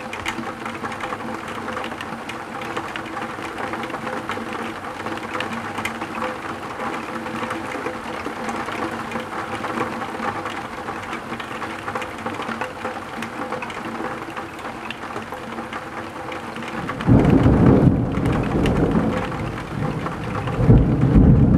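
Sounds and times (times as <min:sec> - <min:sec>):
rain ticking on a tilted window: 0:00.0 - 0:21.5
thunder rumbling: 0:16.8 - 0:21.5.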